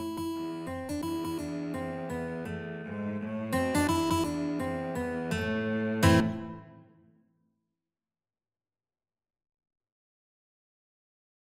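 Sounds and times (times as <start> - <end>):
guitar in a guitar-cello duet: 0.0 - 7.2
cello in a guitar-cello duet: 0.6 - 6.8.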